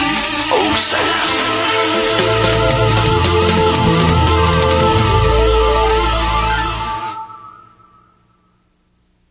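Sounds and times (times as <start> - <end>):
industrial music: 0.0 - 7.4.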